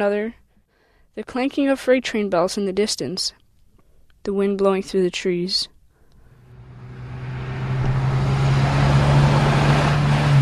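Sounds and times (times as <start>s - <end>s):
speech: 0.0s - 0.4s, 1.1s - 3.4s, 4.2s - 5.7s
motorcycle engines whizzing around a dirt track: 6.2s - 10.4s.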